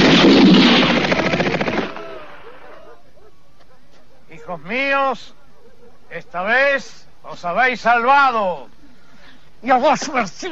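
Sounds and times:
gunfire from a firing squad at an execution: 0.0s - 2.4s
speech: 4.5s - 5.4s, 6.1s - 8.8s, 9.6s - 10.4s.

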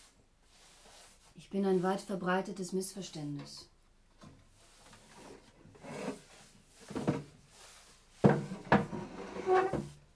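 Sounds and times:
speech: 1.5s - 3.7s
wooden chair scraping and knocking as it is dragged: 4.8s - 10.0s
wooden chair thuds as it is set down: 8.2s - 9.1s.

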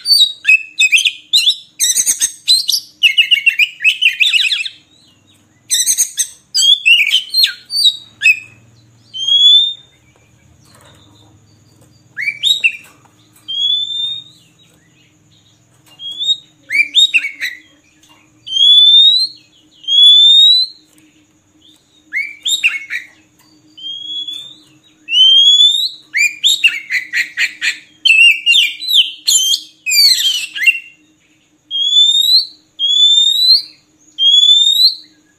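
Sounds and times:
Oriental magpie-robin singing: 0.0s - 20.9s, 21.6s - 31.1s
faint low hum: 0.0s - 35.3s.

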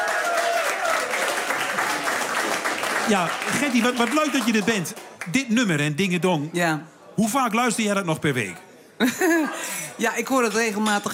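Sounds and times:
studio audience applause: 0.0s - 5.4s
speech: 3.1s - 11.1s.

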